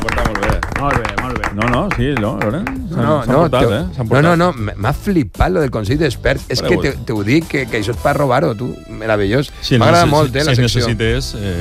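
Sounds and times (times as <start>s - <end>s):
audience clapping: 0.0s - 3.5s
speech: 0.8s - 11.6s.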